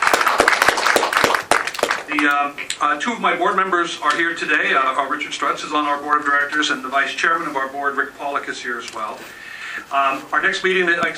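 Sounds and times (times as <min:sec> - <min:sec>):
applause at an organization's meeting for Wells Fargo: 0:00.0 - 0:02.4
speech: 0:02.1 - 0:11.1.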